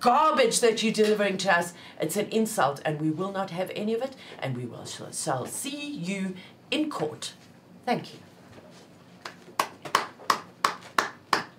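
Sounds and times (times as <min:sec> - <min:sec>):
speech: 0:00.0 - 0:08.3
lone pair of hands clapping in applause: 0:09.2 - 0:11.5.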